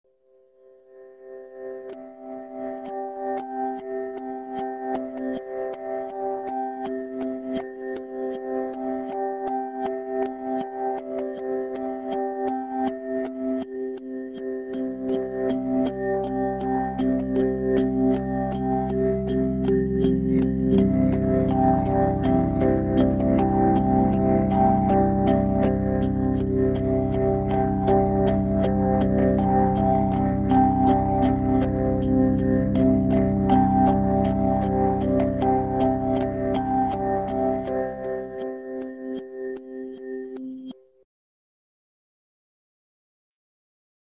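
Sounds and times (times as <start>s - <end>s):
lullaby music: 1.4s - 40.8s.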